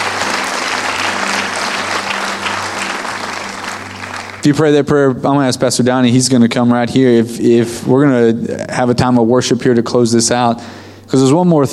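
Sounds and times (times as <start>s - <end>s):
congregation clapping in a church: 0.0s - 4.7s
speech: 4.4s - 11.7s.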